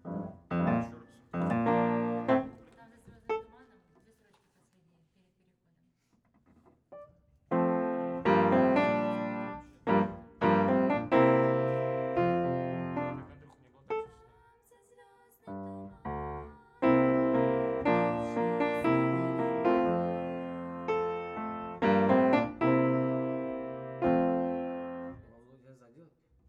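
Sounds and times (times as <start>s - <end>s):
piano: 0.0s - 3.6s, 6.9s - 14.2s, 15.5s - 25.4s.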